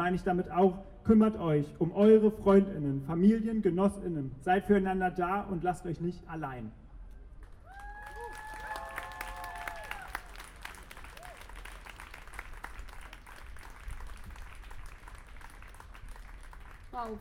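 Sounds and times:
speech: 0:00.0 - 0:06.8, 0:17.0 - 0:17.1
high tonal cheer: 0:07.6 - 0:11.8
audience applause after a speech: 0:07.7 - 0:17.0.

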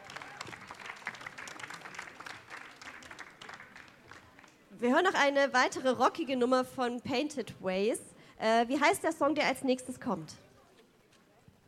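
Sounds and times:
applause: 0:00.0 - 0:04.7
speech: 0:04.8 - 0:10.4.

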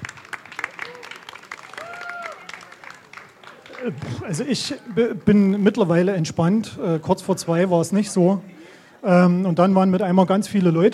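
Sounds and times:
audience applause: 0:00.0 - 0:04.6
speech: 0:03.8 - 0:10.9.

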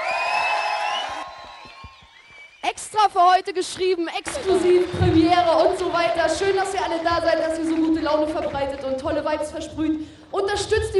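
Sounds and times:
audience at a live band concert cheering and whooping: 0:00.0 - 0:02.6
speech: 0:02.6 - 0:10.9.

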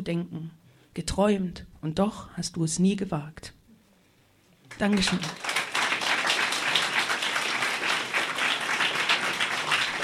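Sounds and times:
speech: 0:00.0 - 0:03.6, 0:04.8 - 0:05.5
audience applause: 0:04.7 - 0:10.0.

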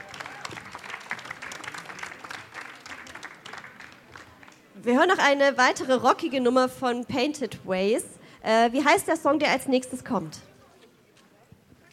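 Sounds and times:
audience applause: 0:00.0 - 0:04.6
speech: 0:04.8 - 0:10.5.

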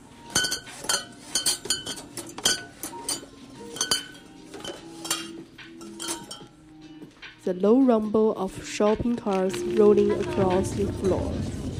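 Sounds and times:
glass bottles clinking on shelves: 0:00.2 - 0:06.6
speech: 0:07.5 - 0:11.6.

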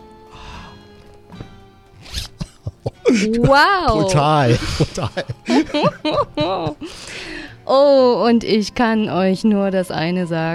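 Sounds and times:
trouser zipper being opened: 0:02.0 - 0:02.4
laughter: 0:02.1 - 0:07.2
speech: 0:03.1 - 0:07.0, 0:07.7 - 0:10.5.

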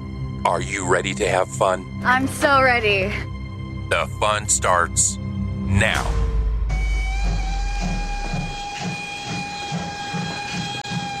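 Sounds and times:
speech: 0:00.4 - 0:03.3, 0:03.9 - 0:06.2
steam locomotive train: 0:05.8 - 0:11.1.

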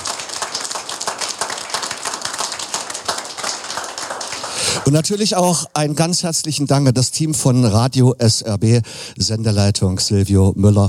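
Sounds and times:
crowd clapping: 0:00.0 - 0:05.6
speech: 0:04.8 - 0:10.8.

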